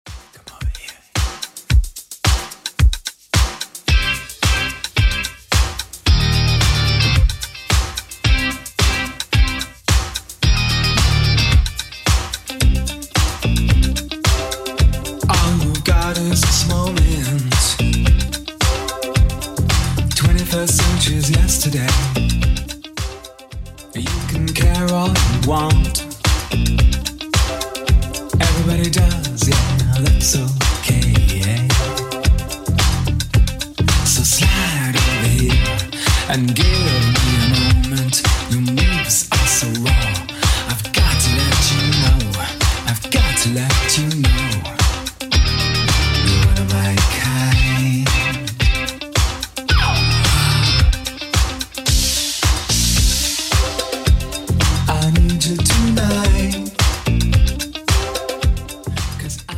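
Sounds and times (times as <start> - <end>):
1980s style music: 0.1 - 59.5.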